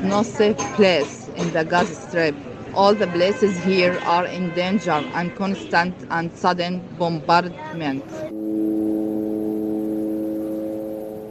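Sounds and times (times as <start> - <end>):
speech: 0.0 - 8.4
surveillance drones buzzing overhead: 8.3 - 11.3.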